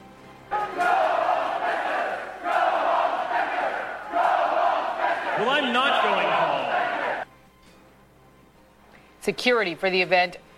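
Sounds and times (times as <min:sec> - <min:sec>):
crowd of protesters chanting loudly in unison: 0:00.4 - 0:07.3
speech: 0:05.4 - 0:06.6, 0:09.2 - 0:10.5.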